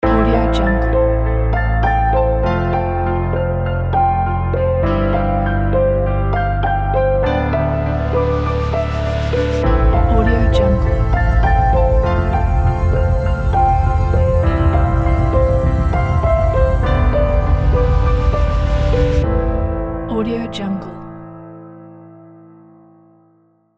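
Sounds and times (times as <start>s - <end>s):
cinematic film logo music: 0.8s - 22.3s.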